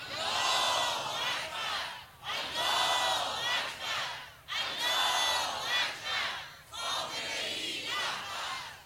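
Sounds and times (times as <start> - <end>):
crowd chanting in 1974: 0.0 - 8.8.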